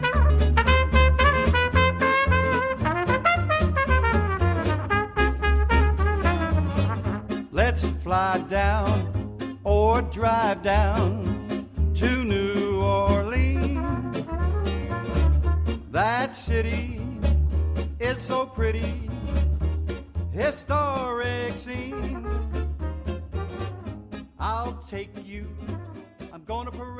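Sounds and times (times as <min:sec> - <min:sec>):
trumpet: 0:00.0 - 0:07.6, 0:13.2 - 0:16.0, 0:21.6 - 0:24.4
banjo: 0:00.0 - 0:26.9
upright bass: 0:00.0 - 0:26.9.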